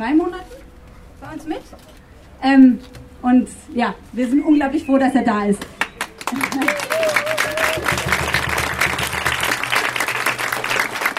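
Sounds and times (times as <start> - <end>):
speech: 0.0 - 0.6, 1.2 - 6.7
audience applause: 5.8 - 11.1.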